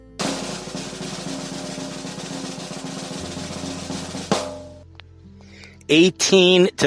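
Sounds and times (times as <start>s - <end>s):
cymbal crash: 0.0s - 4.8s
snare drum roll: 0.0s - 4.8s.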